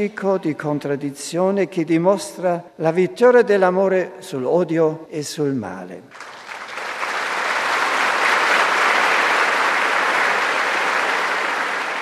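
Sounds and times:
speech: 0.0s - 6.3s
large crowd applauding in a courtyard: 6.1s - 12.0s.

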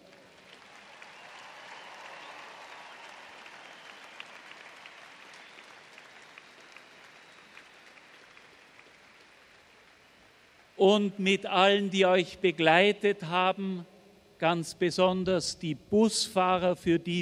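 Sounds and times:
crowd applauding: 0.0s - 10.8s
speech: 10.8s - 17.2s.

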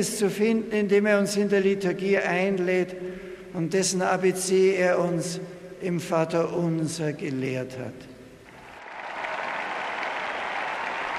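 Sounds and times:
speech: 0.0s - 8.1s
crowd applause: 8.6s - 11.1s.

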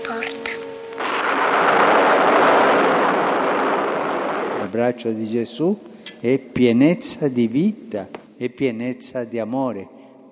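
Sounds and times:
thunder: 1.0s - 4.9s
speech: 4.7s - 10.0s.

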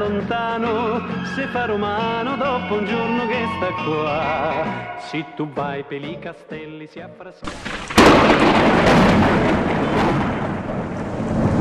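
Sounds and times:
speech: 0.0s - 10.2s
downpour on Saint Peter's Square: 7.5s - 11.5s
thunder clap in a thunderstorm over Rome: 7.5s - 11.5s.

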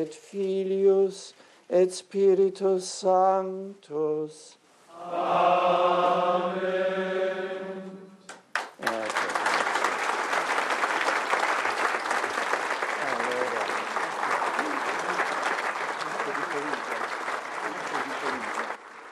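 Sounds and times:
speech: 0.0s - 7.2s
applause in a synod hall: 8.3s - 19.1s.

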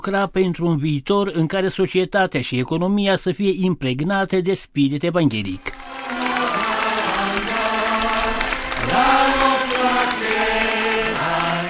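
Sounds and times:
speech: 0.0s - 5.8s
crowd applause: 5.6s - 11.6s.

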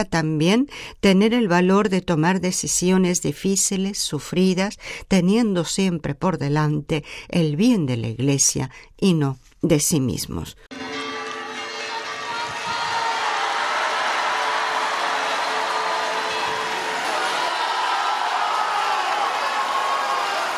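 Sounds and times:
speech: 0.0s - 10.8s
crowd of pilgrims applauding: 10.7s - 20.5s.

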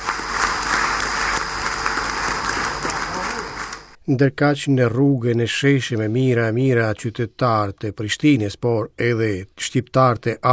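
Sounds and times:
applause in the Kosovo parliament greeting the declaration of independence: 0.0s - 4.0s
speech: 4.1s - 10.5s.

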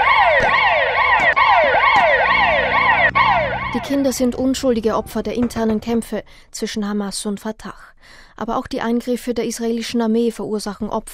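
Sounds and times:
ambulance siren: 0.0s - 5.6s
low rumble of traffic: 0.0s - 7.3s
speech: 3.8s - 11.1s.

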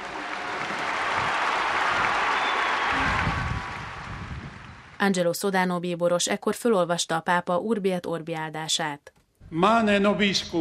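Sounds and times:
crowd cheering and applauding in square: 0.0s - 5.0s
speech: 5.0s - 10.5s.

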